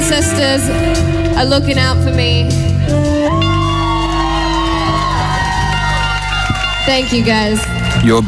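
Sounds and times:
speech: 0.1 - 3.1, 6.9 - 8.2
festival crowd cheering at a live performance: 3.2 - 8.2.

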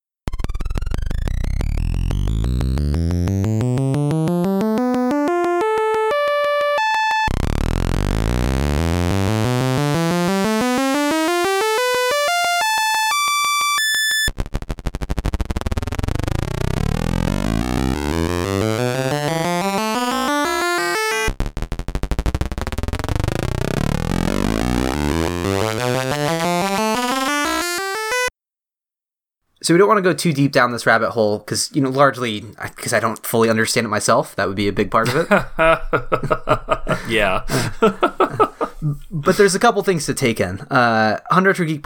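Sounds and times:
sound chip envelopes sweeping pitch: 0.3 - 28.3
tone generator: 0.3 - 28.3
speech: 29.7 - 41.8
laughter: 35.0 - 39.5.

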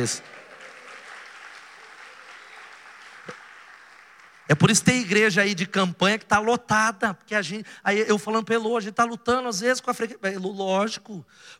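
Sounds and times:
speech: 0.0 - 0.4, 4.5 - 11.5
audience applause: 0.0 - 4.8.

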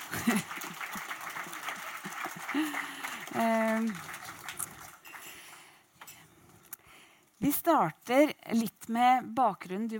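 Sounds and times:
laughter: 0.0 - 3.2
audience applause: 0.0 - 5.7
speech: 2.6 - 4.1, 7.4 - 9.9.

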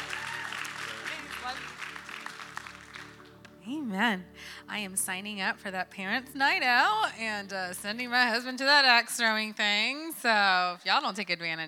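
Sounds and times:
congregation applause welcoming a speaker at a church service: 0.0 - 3.5
speech: 1.5 - 1.8, 3.7 - 11.6.

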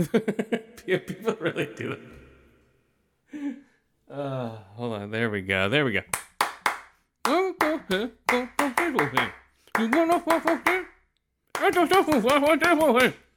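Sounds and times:
speech: 0.0 - 2.2, 3.3 - 6.3, 7.9 - 10.9, 11.6 - 13.2
hand clapping: 6.1 - 13.3.

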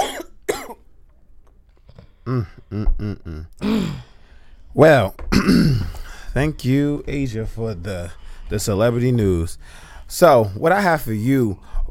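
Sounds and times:
person coughing: 0.0 - 0.8, 2.3 - 4.1, 5.3 - 6.1
speech: 2.3 - 4.1, 4.7 - 11.8.

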